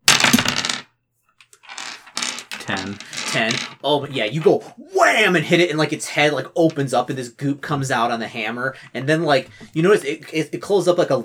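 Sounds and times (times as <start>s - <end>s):
dice rattling on a hard surface: 0.1s - 0.8s, 1.4s - 3.8s
speech: 2.7s - 11.2s.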